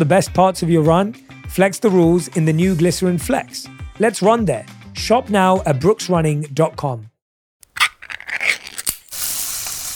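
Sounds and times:
speech: 0.0s - 7.1s
Spam sizzling in a pan: 8.9s - 9.9s.

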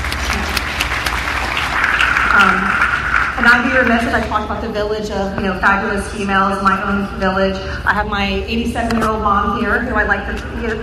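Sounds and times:
audience applause: 0.0s - 3.9s
speech: 3.5s - 10.8s.

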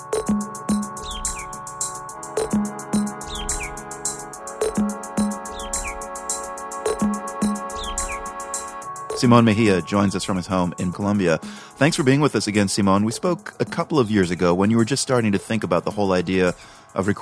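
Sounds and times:
birdsong: 0.3s - 1.9s, 3.0s - 3.8s, 4.8s - 6.2s, 7.0s - 8.3s
speech: 9.2s - 17.1s.

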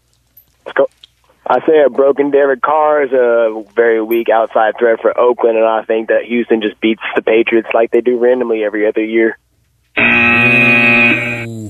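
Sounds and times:
speech: 1.5s - 9.4s
elimination buzzer on a sports radio show: 10.0s - 11.6s.

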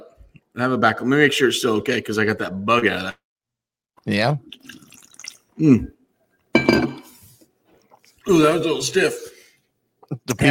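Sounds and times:
speech: 0.6s - 3.2s, 4.0s - 4.8s, 5.6s - 6.0s, 8.3s - 9.3s, 10.2s - 10.4s
sipping red wine from a glass: 4.5s - 5.9s.

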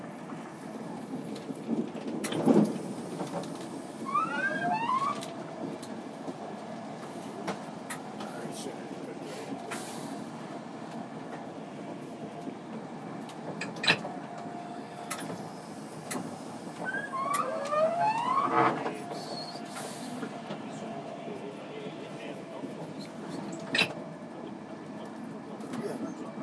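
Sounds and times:
train accelerating: 0.0s - 26.4s
insanely squeaky door: 4.0s - 5.3s, 16.8s - 19.7s.

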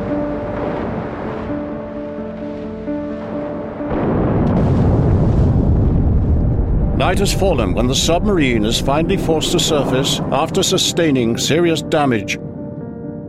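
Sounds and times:
depth charges exploding underwater at sea: 0.0s - 10.4s
speech: 7.0s - 12.5s.

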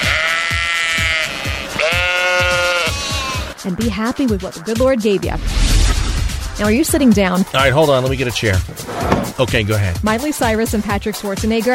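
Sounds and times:
sheep bleating: 0.0s - 3.6s
speech: 3.6s - 5.7s, 6.6s - 11.7s.

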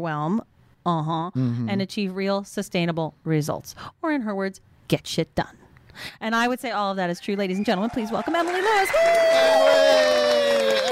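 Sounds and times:
speech: 0.0s - 10.9s
audience applause: 7.3s - 10.9s.

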